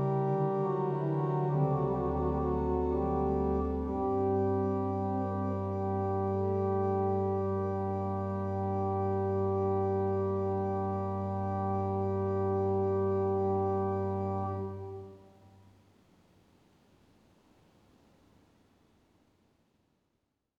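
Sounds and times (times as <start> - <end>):
tierce en taille on organ with Claribel, Bourdon and Praestant stops: 0.0 - 15.2.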